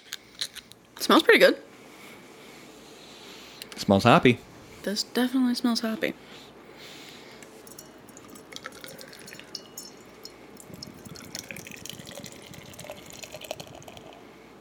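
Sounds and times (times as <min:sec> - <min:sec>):
speech: 0:01.1 - 0:01.7, 0:03.8 - 0:06.5
beer pouring into a glass: 0:07.7 - 0:14.3.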